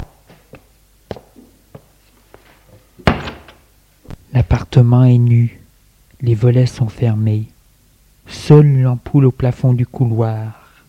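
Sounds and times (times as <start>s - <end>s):
door being shut: 3.0s - 3.7s
speech: 4.5s - 5.6s, 6.2s - 7.5s, 8.3s - 10.6s.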